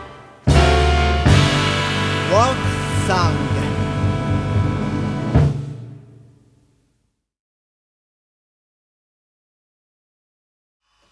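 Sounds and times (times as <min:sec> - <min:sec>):
gentle forest jazz: 0:00.0 - 0:05.8.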